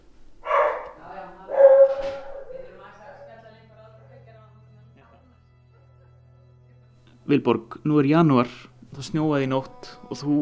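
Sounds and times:
border collie barking: 0.4 - 3.3
speech: 7.3 - 10.4.

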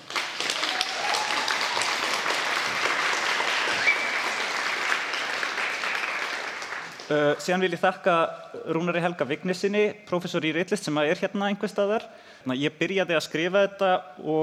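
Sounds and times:
audience applause: 0.0 - 7.2
speech: 7.1 - 14.4.

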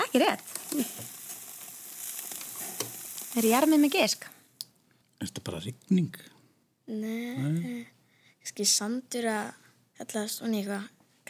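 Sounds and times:
food sizzling on a grill: 0.0 - 4.5
speech: 0.2 - 1.1, 3.4 - 4.4, 5.2 - 6.3, 6.9 - 11.0.

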